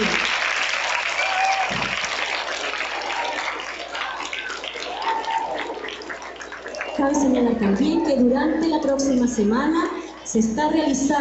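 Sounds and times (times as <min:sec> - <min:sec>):
audience applause: 0:00.0 - 0:08.2
speech: 0:07.0 - 0:11.2.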